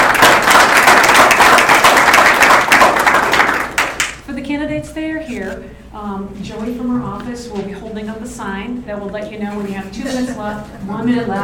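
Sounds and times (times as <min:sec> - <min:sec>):
crowd applause: 0:00.0 - 0:04.2
speech: 0:05.5 - 0:11.4.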